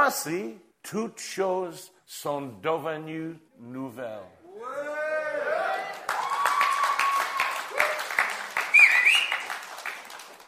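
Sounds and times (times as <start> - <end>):
speech: 0.1 - 5.0
audience applause: 5.5 - 10.4.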